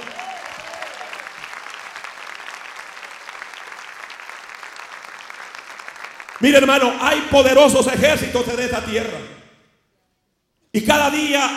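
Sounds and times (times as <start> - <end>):
audience applause: 0.0 - 6.8
speech: 6.4 - 9.4, 10.8 - 11.5.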